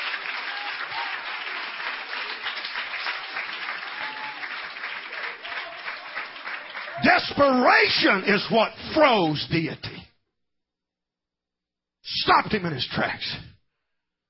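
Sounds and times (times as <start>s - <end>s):
audience clapping hands: 0.0s - 8.6s
speech: 7.0s - 9.9s, 12.3s - 13.5s.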